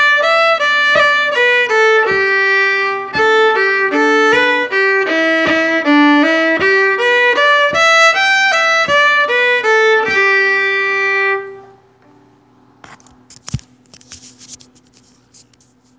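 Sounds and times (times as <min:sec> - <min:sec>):
fiddle: 0:00.0 - 0:11.8.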